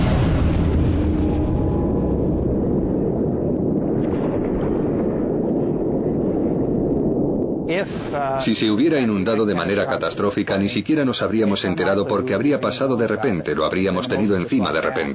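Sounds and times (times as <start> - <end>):
loud low rumble and roar: 0.0 - 7.7
heavy explosion jolting a deep-sea bathyscaphe: 0.0 - 15.1
speech: 8.2 - 15.1.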